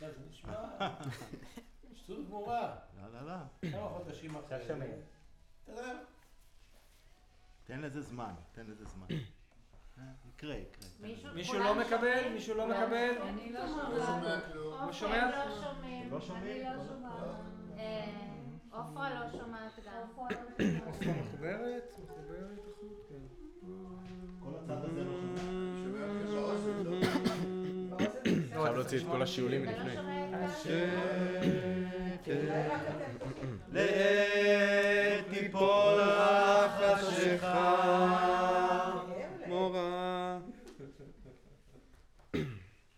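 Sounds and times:
laughter: 0.5s - 2.3s, 24.7s - 34.0s, 38.7s - 42.0s
choir singing: 11.4s - 19.6s, 20.3s - 40.7s.

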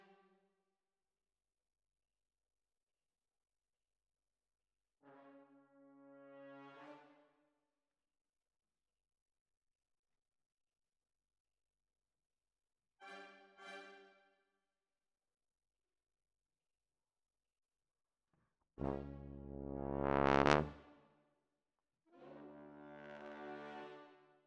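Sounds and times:
tuba: 5.1s - 7.0s, 18.8s - 21.0s, 22.3s - 23.9s.

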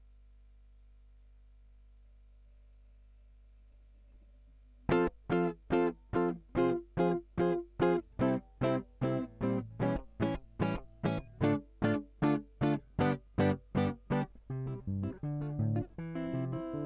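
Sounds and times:
guitar line: 4.9s - 16.8s.

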